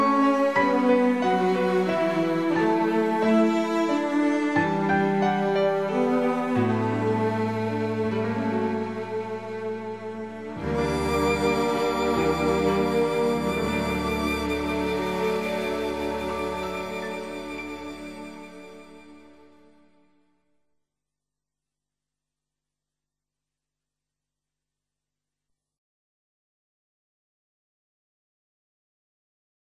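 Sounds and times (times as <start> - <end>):
violin: 0.0 - 20.0.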